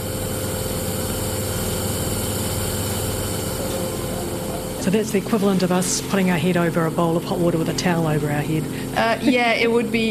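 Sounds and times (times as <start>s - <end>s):
nebulizer being turned on: 0.0s - 10.0s
speech: 4.9s - 10.0s.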